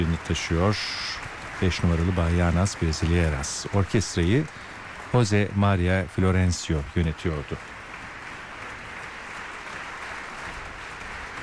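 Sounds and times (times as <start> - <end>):
audience applause after a concert: 0.0 - 11.4
speech: 0.1 - 7.7.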